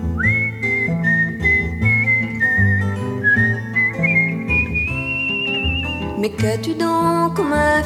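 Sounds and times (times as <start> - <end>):
whistled melody: 0.0 - 6.3
instrumental backing music: 0.0 - 7.8
speech: 6.2 - 7.8.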